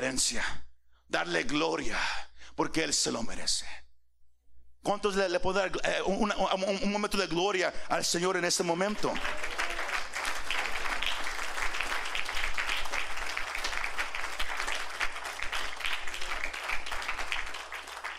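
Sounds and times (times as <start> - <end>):
speech: 0.0 - 3.8, 4.8 - 9.6
audience applauding: 8.9 - 18.1.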